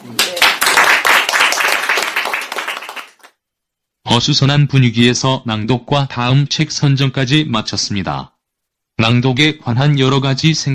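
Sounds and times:
group clapping hands: 0:00.0 - 0:03.4
speech: 0:04.1 - 0:08.3, 0:09.0 - 0:10.7.

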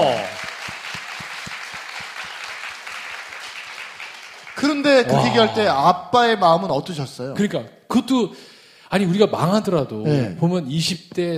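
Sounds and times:
group applause: 0:00.0 - 0:05.6
speech: 0:04.6 - 0:11.3.

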